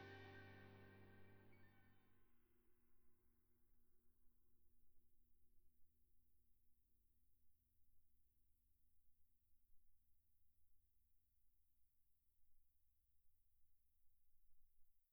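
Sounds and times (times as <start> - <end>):
ride cymbal: 0.0 - 0.9.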